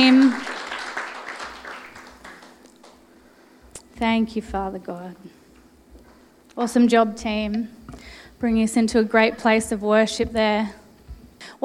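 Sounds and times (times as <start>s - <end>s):
audience clapping: 0.0s - 3.1s
speech: 4.0s - 5.4s, 6.6s - 10.8s, 11.4s - 11.6s.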